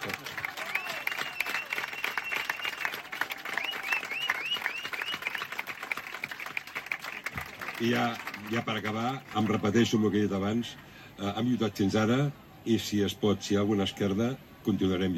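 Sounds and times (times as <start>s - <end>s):
loud applause from audience: 0.0s - 9.7s
speech: 7.8s - 15.1s.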